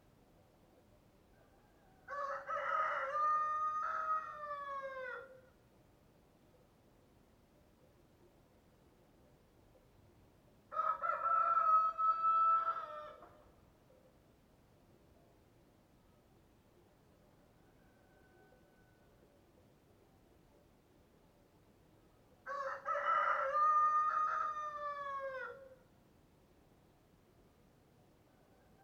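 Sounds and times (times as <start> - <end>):
rooster crowing cock-a-doodle-doo: 1.5 - 5.4, 10.7 - 13.3, 17.5 - 19.1, 22.4 - 25.8.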